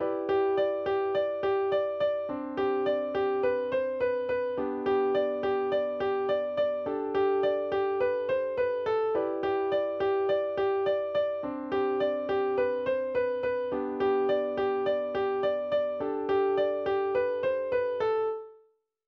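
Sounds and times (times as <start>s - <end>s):
instrumental music: 0.0s - 18.6s.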